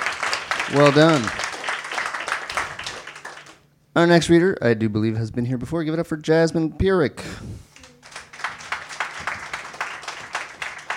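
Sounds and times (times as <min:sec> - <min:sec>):
audience applause for a reader: 0:00.0 - 0:03.7, 0:07.8 - 0:10.9
speech: 0:00.7 - 0:01.4, 0:04.0 - 0:07.6.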